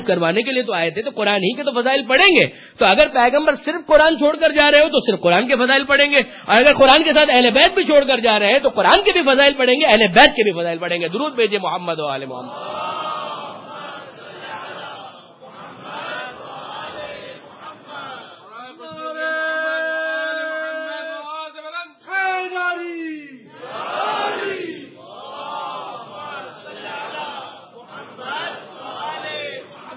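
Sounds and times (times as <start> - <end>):
speech: 0.0 - 12.8
crowd chanting religious slogans: 12.4 - 21.0, 23.4 - 29.9.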